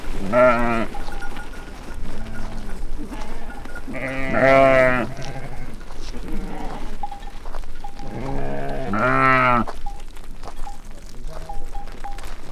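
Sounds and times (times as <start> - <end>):
sheep of a grazing flock bleating: 0.0 - 12.4.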